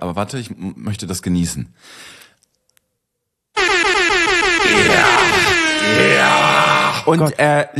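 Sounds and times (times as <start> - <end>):
speech: 0.1 - 2.2, 7.1 - 7.7
air horn sound effect fired from a button: 3.6 - 7.1.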